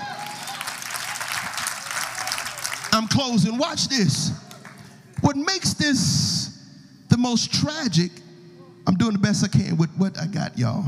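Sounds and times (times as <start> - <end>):
audience clapping hands: 0.0 - 3.6, 4.4 - 5.0
speech: 3.0 - 4.5, 5.2 - 6.4, 7.2 - 8.2, 8.8 - 10.8.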